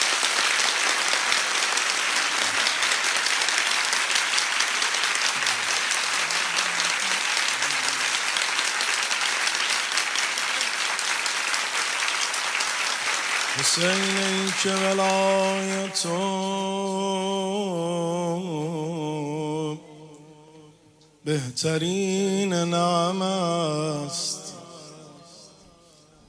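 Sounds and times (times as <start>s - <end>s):
crowd applause: 0.0s - 16.6s
speech: 13.7s - 18.7s, 21.3s - 24.4s.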